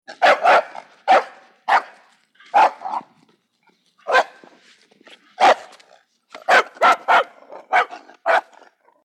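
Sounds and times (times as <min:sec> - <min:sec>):
small mean dog barking: 0:00.1 - 0:03.1, 0:04.1 - 0:04.4, 0:05.4 - 0:05.7, 0:06.4 - 0:08.6.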